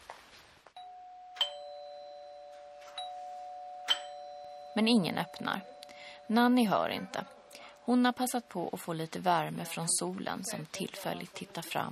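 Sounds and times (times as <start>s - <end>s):
doorbell ringing: 0.8s - 8.6s
speech: 4.8s - 11.9s.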